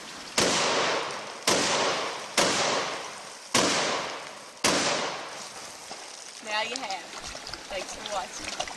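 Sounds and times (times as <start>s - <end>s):
12-gauge shotgun fired into a stream of water: 0.4s - 5.2s
speech: 6.6s - 8.7s.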